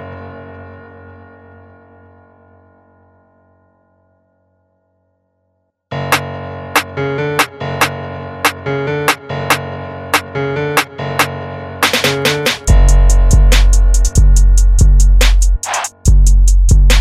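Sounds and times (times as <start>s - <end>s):
instrumental music at 71 BPM in D flat minor: 5.9s - 16.9s.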